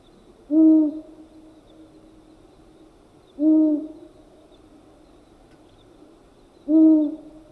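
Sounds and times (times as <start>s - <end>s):
long-eared owl hooting: 0.5s - 1.1s, 3.4s - 4.0s, 6.7s - 7.3s.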